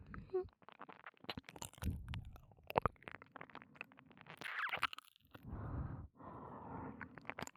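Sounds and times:
teasing ear licking ASMR: 0.2 - 5.5, 7.0 - 7.5.

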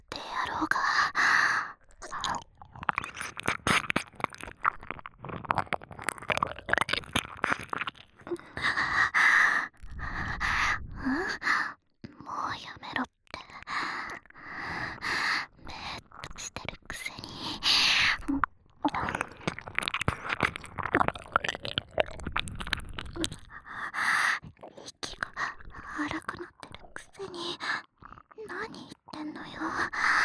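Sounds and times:
fellatio sounds: 0.3 - 30.2
nipple licking: 1.1 - 11.2, 13.3 - 27.1
ear licking: 1.9 - 9.2, 16.0 - 24.5.

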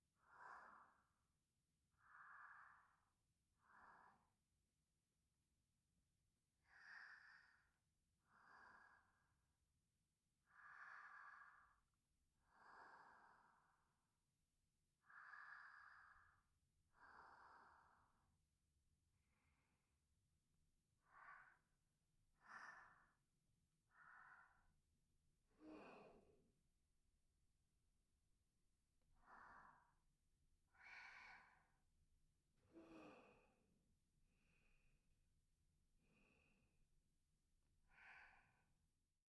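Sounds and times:
person breathing softly: 0.2 - 1.2, 1.9 - 4.4, 6.6 - 9.4, 10.4 - 14.2, 15.0 - 18.3, 19.2 - 19.9, 21.0 - 23.2, 23.8 - 24.8, 25.5 - 26.5, 29.0 - 30.1, 30.7 - 31.9, 32.6 - 35.1, 36.0 - 37.0, 37.8 - 38.8.

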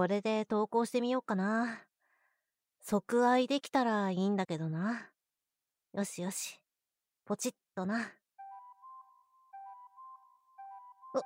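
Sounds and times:
speech: 0.0 - 1.9, 2.8 - 5.1, 6.0 - 6.6, 7.3 - 8.2
phone incoming message notification chime: 8.4 - 11.2.

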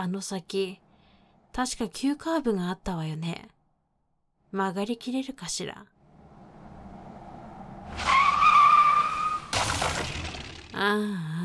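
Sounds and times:
speech: 0.0 - 0.8, 1.6 - 3.6, 4.5 - 5.9, 10.8 - 11.4
tires of a speeding car screeching in a skid: 6.0 - 10.8
car crashing through a guardrail: 7.9 - 10.8.

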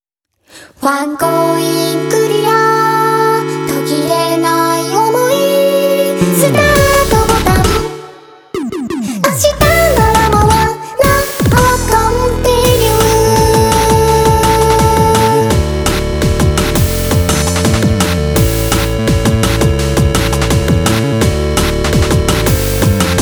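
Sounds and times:
8-bit love music: 1.3 - 23.2.

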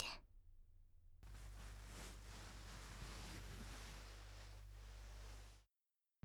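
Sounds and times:
ear cleaning ASMR: 1.3 - 5.6.

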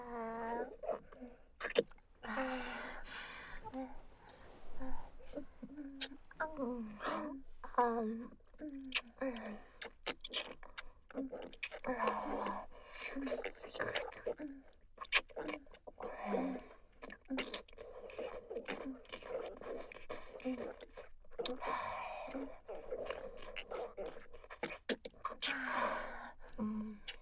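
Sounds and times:
wet mouth sounds ASMR loop: 0.6 - 27.1.

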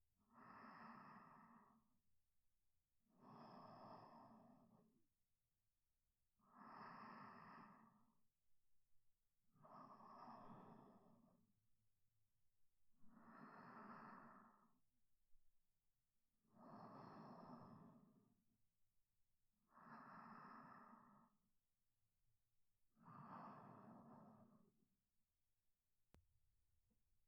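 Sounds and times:
sleep breathing: 0.4 - 1.9, 3.2 - 4.9, 6.5 - 8.2, 9.6 - 11.3, 13.1 - 14.7, 16.6 - 18.2, 19.7 - 21.4, 23.0 - 24.8.

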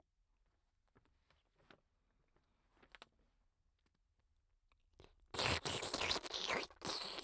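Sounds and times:
ear licking sounds: 5.3 - 7.1.

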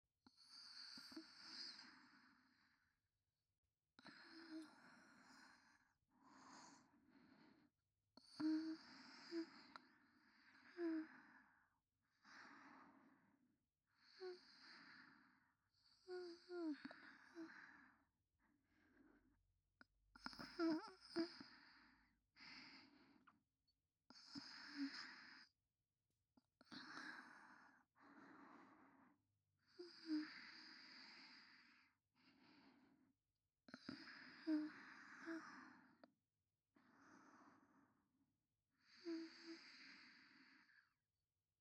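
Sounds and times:
woman breathing calmly in sleep beside her boyfriend: 0.3 - 2.9, 4.0 - 13.4, 14.0 - 18.1, 20.2 - 23.4, 24.1 - 25.5, 26.6 - 33.0, 33.7 - 36.1, 36.8 - 38.0, 38.8 - 41.0.

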